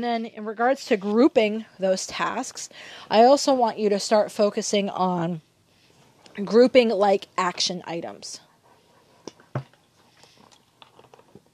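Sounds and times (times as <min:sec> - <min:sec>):
speech: 0:00.0 - 0:05.5, 0:06.4 - 0:08.4
person drinking water: 0:09.3 - 0:11.5.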